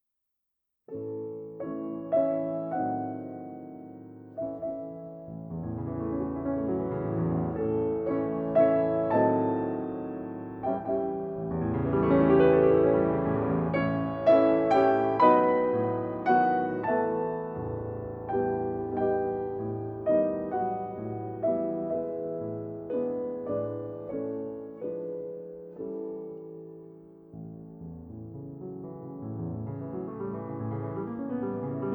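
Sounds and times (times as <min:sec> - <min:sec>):
piano waltz: 0:00.9 - 0:31.9.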